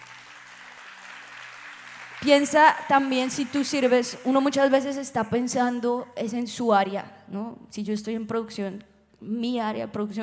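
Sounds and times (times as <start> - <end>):
audience applause: 0.0 - 4.3
speech: 2.2 - 10.2.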